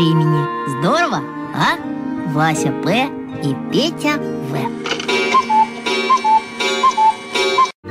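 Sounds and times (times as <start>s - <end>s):
speech: 0.0s - 4.8s
busy run of musical tones: 3.6s - 7.8s
alarm clock ticking: 4.7s - 7.8s.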